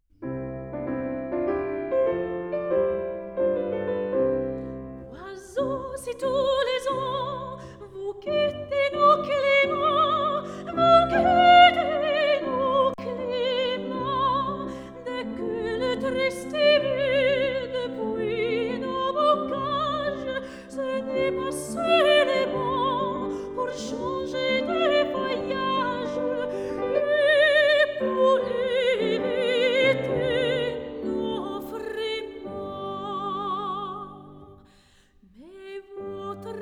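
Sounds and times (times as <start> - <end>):
piano: 0.0 - 36.6
person singing: 5.2 - 34.2.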